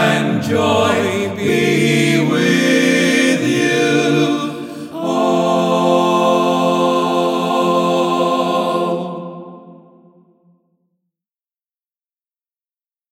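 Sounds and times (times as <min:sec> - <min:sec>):
person singing practice without piano: 0:00.0 - 0:10.1.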